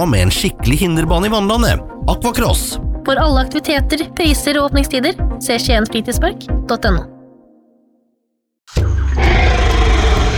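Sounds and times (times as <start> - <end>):
speech: 0.0 - 7.1
T-Rex roar sound effect: 8.7 - 10.3.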